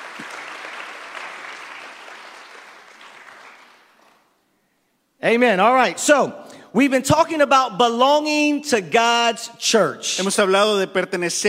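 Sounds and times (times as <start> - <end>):
audience applause: 0.0 - 4.3
speech: 5.2 - 11.4.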